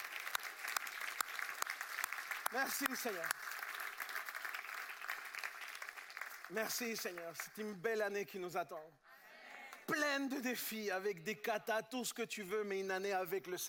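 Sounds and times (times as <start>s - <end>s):
audience applauding: 0.0s - 7.8s
speech: 2.5s - 3.6s, 6.5s - 9.1s, 9.9s - 13.6s.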